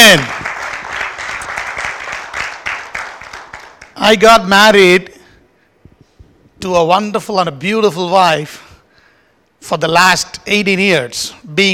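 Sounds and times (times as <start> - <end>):
audience clapping: 0.0 - 4.1
speech: 0.1 - 0.4, 4.0 - 5.1, 6.6 - 8.6, 9.6 - 11.7.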